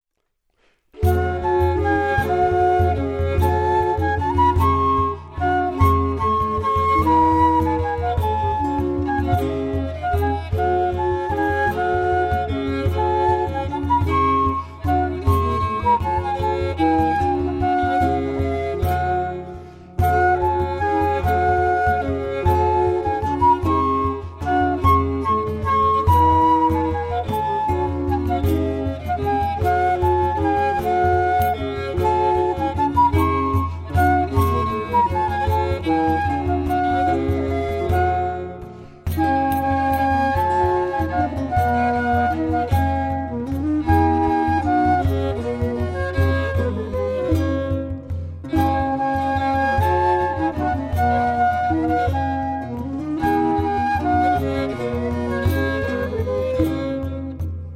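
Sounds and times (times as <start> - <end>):
Renaissance and medieval dance music on historical instruments: 0.9 - 57.7.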